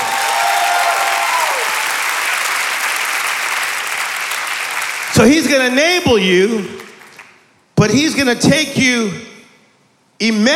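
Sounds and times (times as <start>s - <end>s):
audience clapping loudly: 0.0s - 5.6s, 6.6s - 7.4s
speech: 5.2s - 6.8s, 7.8s - 9.2s, 10.2s - 10.5s.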